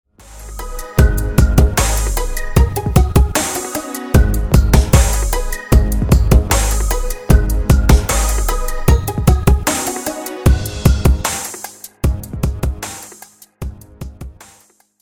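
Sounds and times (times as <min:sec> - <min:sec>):
wrong melody: 0:00.2 - 0:11.3.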